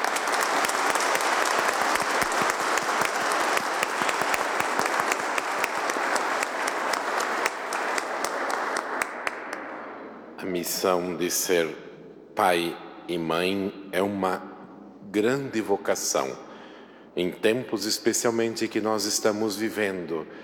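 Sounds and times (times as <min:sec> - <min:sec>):
audience applause: 0:00.0 - 0:09.8
speech: 0:10.7 - 0:11.8, 0:12.4 - 0:14.5, 0:15.1 - 0:16.4, 0:17.2 - 0:20.4.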